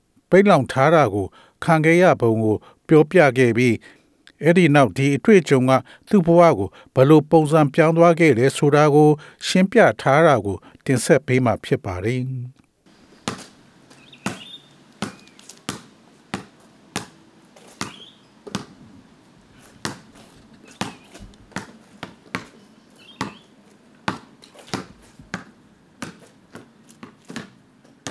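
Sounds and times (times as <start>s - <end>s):
speech: 0.3s - 12.6s
basketball bouncing outside a house: 14.2s - 17.2s, 17.8s - 18.8s, 19.8s - 20.1s, 20.7s - 22.5s, 23.2s - 23.4s, 24.1s - 28.0s.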